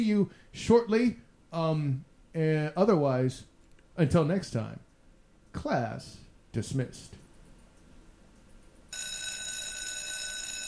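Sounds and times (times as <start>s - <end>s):
speech: 0.0s - 4.9s, 5.6s - 7.2s
school bell ringing: 8.9s - 10.6s.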